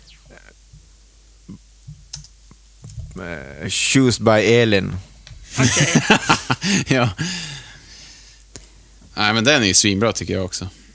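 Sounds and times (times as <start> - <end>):
faint low hum: 0.0 - 10.9
typing on a computer keyboard: 2.1 - 2.4
speech: 3.2 - 7.4, 9.3 - 10.8
laughter: 5.5 - 7.4.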